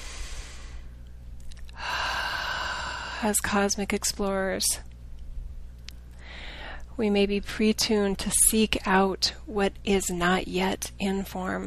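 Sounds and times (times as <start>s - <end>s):
slow deep breath: 0.0s - 0.9s, 1.8s - 3.2s, 6.2s - 6.9s
faint low hum: 0.0s - 11.6s
speech: 3.2s - 4.9s, 7.0s - 11.6s.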